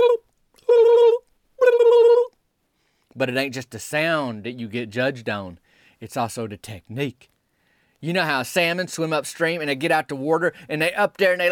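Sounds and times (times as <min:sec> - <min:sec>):
voice imitating a turkey call: 0:00.0 - 0:02.4
speech: 0:03.2 - 0:07.3, 0:08.0 - 0:11.4.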